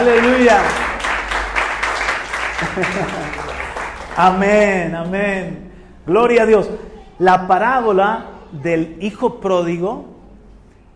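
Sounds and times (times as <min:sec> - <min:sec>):
speech: 0:00.0 - 0:00.8, 0:02.7 - 0:03.5, 0:04.2 - 0:10.1
audience applause: 0:00.0 - 0:04.8
laughter: 0:02.4 - 0:04.0.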